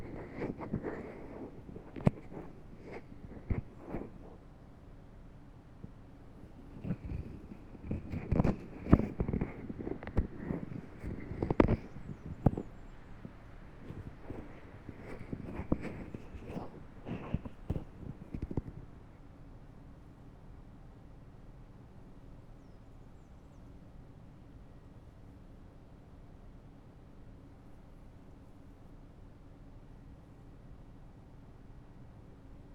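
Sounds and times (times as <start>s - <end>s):
left ear massage rubbing: 0.0s - 4.4s, 6.4s - 12.9s, 13.8s - 18.8s.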